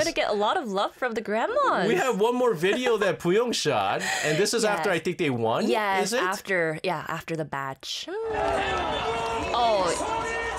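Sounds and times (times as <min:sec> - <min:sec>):
speech: 0:00.1 - 0:10.2
crowd cheering and shouting after a won match: 0:08.1 - 0:10.5.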